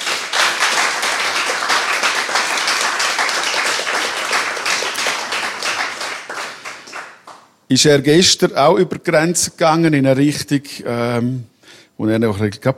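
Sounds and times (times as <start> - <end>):
audience applause: 0.0 - 7.4
speech: 7.7 - 12.7.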